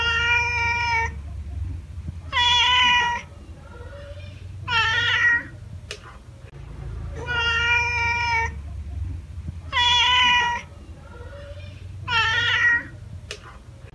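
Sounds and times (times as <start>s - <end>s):
cat meowing: 0.0s - 1.2s, 2.2s - 5.6s, 7.2s - 8.6s, 9.6s - 13.0s.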